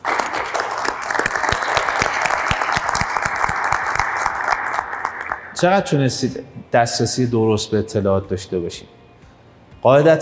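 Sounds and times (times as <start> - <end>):
audience applause: 0.0 - 5.6
speech: 5.6 - 9.0, 9.8 - 10.2.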